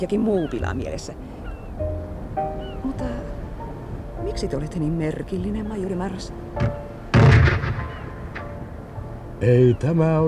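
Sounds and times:
speech: 0.0 - 1.4, 4.2 - 7.7, 9.4 - 10.2
artillery shell fired across a ship's bow: 6.6 - 8.6.

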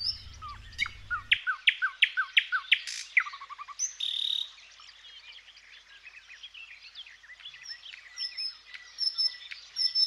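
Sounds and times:
low hum: 0.0 - 1.3
thrush nightingale song: 0.0 - 10.0.

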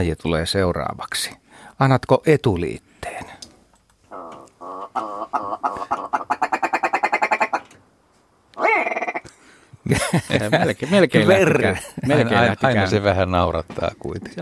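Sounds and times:
speech: 0.0 - 3.3, 9.9 - 14.3
willow ptarmigan calling: 4.1 - 7.7, 8.6 - 9.3
laughter: 9.8 - 12.8.

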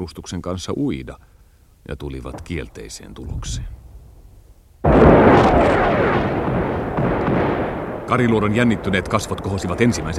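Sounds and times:
speech: 0.0 - 3.8, 8.1 - 10.1
heavy artillery barrage explosions: 2.2 - 10.1.

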